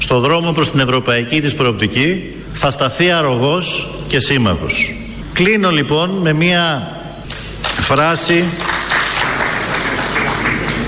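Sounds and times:
speech: 0.1s - 7.0s, 7.8s - 8.8s
crowd applause: 8.6s - 10.8s.

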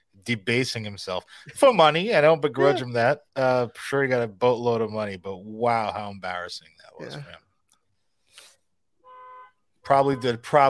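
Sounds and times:
speech: 0.2s - 7.4s, 9.9s - 10.6s
car alarm honk: 9.0s - 10.4s.

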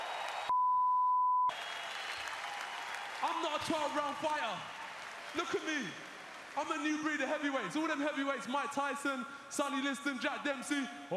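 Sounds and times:
audience applause: 0.0s - 0.5s, 1.5s - 8.2s
speech: 3.2s - 11.1s.

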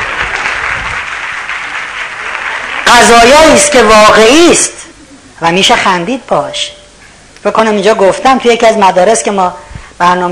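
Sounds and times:
audience applause at a talk on success: 0.0s - 3.2s
speech: 2.9s - 4.8s, 5.4s - 6.8s, 7.4s - 10.3s.

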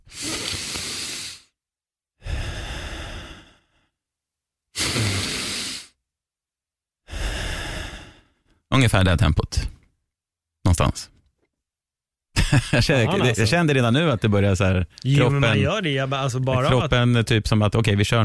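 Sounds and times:
deep breathing in through the nose: 0.0s - 1.6s, 2.2s - 4.0s, 4.8s - 6.0s, 7.1s - 8.6s
speech: 8.8s - 9.8s, 10.7s - 11.1s, 12.5s - 18.2s
laughter: 12.4s - 13.7s, 15.2s - 17.0s.

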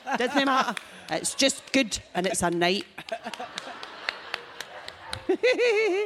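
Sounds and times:
laughter: 0.0s - 2.0s, 3.0s - 6.0s
speech: 0.1s - 3.7s, 5.3s - 6.0s
scattered hand claps: 0.4s - 5.5s.

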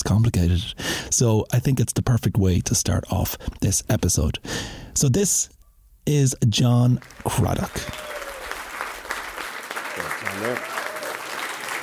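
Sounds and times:
speech: 0.1s - 8.2s, 10.4s - 10.7s
audience applause: 7.0s - 11.8s.

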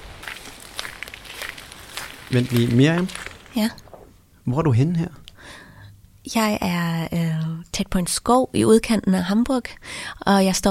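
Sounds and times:
soft footsteps walking around behind a Greek restaurant near Hamburg: 0.0s - 4.1s
faint crackles: 0.0s - 4.4s
speech: 2.3s - 3.8s, 4.5s - 5.2s, 6.2s - 10.6s.

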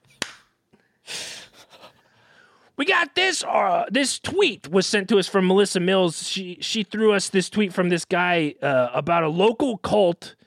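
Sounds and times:
loud hand clap: 0.2s - 0.5s
speech: 2.8s - 10.4s.

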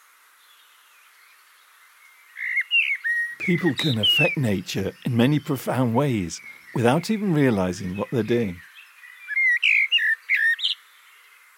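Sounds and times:
recorded blackbird song: 2.3s - 11.4s
speech: 3.4s - 8.7s.

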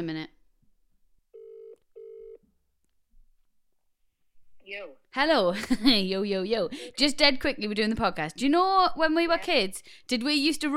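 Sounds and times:
speech: 0.0s - 0.4s, 4.7s - 10.7s
phone ringback tone: 1.4s - 2.4s.

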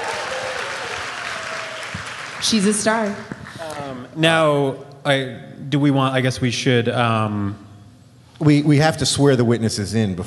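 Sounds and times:
round of applause: 0.0s - 3.6s
speech: 2.4s - 7.6s, 8.4s - 10.2s.

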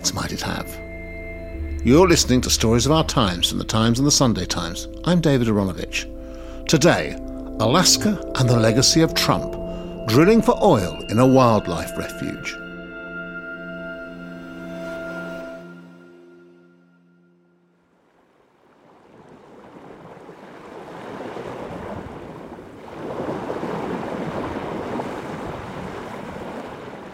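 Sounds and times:
steady droning hum: 0.0s - 12.8s
speech: 1.8s - 12.6s
surging waves on the Arctic coast: 18.1s - 27.1s.

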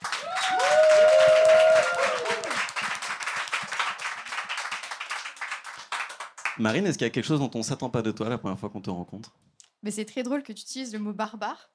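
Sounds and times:
audience applauding: 0.0s - 6.8s
whoops and cheers: 0.1s - 2.8s
speech: 6.6s - 11.7s.

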